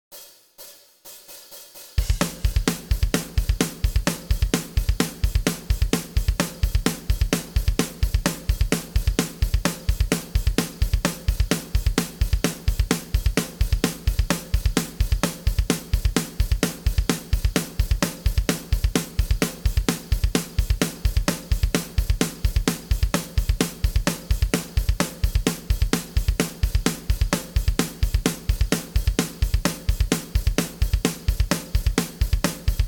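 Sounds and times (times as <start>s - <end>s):
drums: 0.0s - 32.8s.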